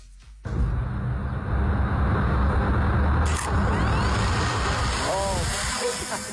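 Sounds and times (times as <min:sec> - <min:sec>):
drone rotors buzzing on lift-off: 0:00.5 - 0:06.3
drone clicking: 0:03.2 - 0:05.6.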